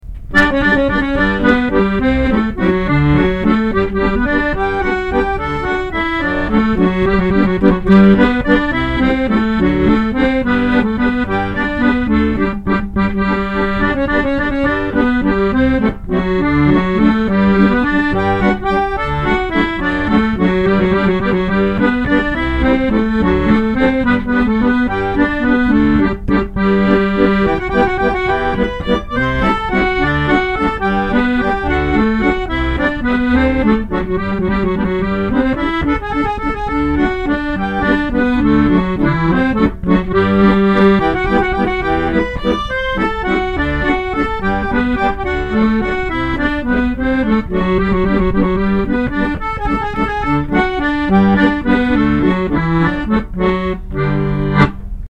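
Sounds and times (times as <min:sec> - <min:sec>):
waltz in G: 0:00.0 - 0:55.0.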